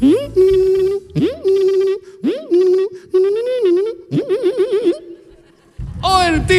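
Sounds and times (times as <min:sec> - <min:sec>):
voice imitating a slot machine: 0:00.0 - 0:05.1.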